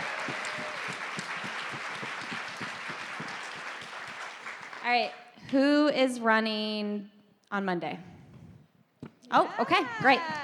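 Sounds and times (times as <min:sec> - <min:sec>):
crowd clapping: 0:00.0 - 0:05.2, 0:09.7 - 0:10.4
speech: 0:04.9 - 0:08.1, 0:09.3 - 0:10.4.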